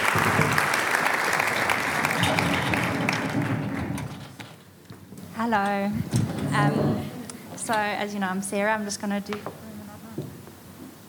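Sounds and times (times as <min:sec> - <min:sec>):
audience clapping: 0:00.0 - 0:04.2
speech: 0:05.4 - 0:07.1, 0:07.7 - 0:09.6.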